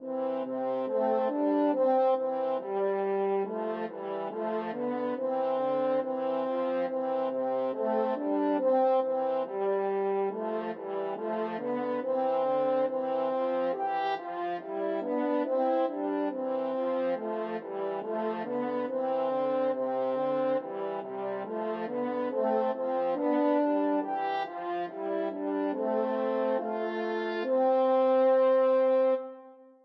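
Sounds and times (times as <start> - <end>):
french horn duet: 0.0 - 29.8.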